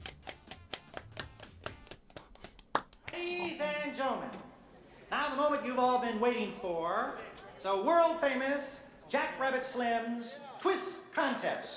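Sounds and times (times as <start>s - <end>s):
applause: 0.0s - 3.6s
speech: 4.0s - 4.5s, 5.1s - 11.7s.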